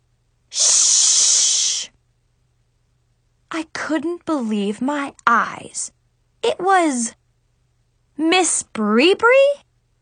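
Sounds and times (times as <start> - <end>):
person hissing: 0.5 - 2.0
speech: 3.9 - 7.2, 8.2 - 9.6.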